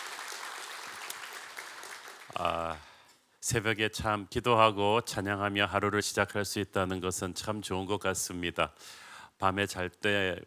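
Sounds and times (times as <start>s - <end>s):
audience applause: 0.0s - 2.8s
speech: 2.4s - 2.8s, 3.4s - 10.4s.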